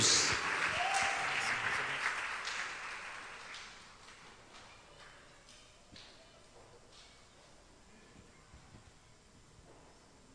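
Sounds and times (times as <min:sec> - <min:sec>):
audience applause: 0:00.0 - 0:03.9.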